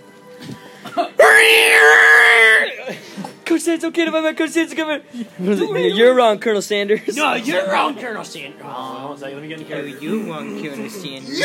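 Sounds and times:
person screaming in imitation of a movie character's yell: 0:01.2 - 0:02.8
speech: 0:02.9 - 0:11.4.

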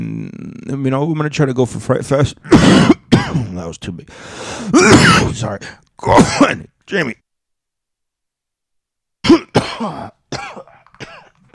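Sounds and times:
speech: 0:00.7 - 0:07.2
cough: 0:02.5 - 0:03.6, 0:04.8 - 0:05.4, 0:06.1 - 0:06.6, 0:09.2 - 0:11.5.

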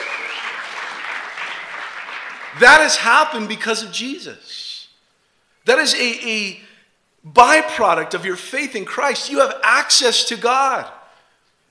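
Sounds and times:
audience applause: 0:00.0 - 0:02.9
speech: 0:02.6 - 0:04.6, 0:05.6 - 0:06.6, 0:07.2 - 0:11.0.

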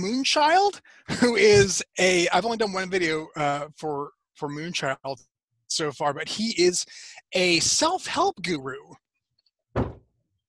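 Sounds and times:
speech: 0:00.0 - 0:09.0
dogs banging on attic door: 0:09.8 - 0:10.0.

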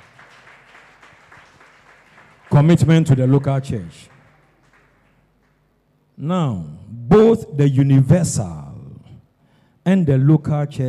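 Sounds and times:
audience clapping: 0:00.0 - 0:05.8
speech: 0:02.6 - 0:04.1, 0:06.2 - 0:08.6, 0:09.8 - 0:10.8.

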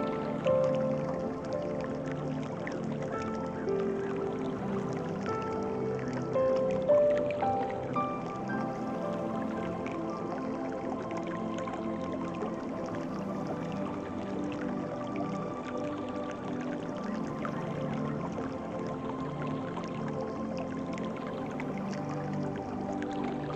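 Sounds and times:
calm music with soft sustained tones: 0:00.0 - 0:23.5
steady dense water sounds: 0:00.0 - 0:23.5.

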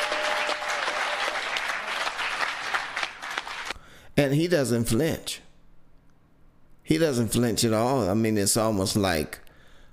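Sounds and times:
audience clapping: 0:00.0 - 0:03.8
speech: 0:04.2 - 0:05.4, 0:06.9 - 0:09.4.

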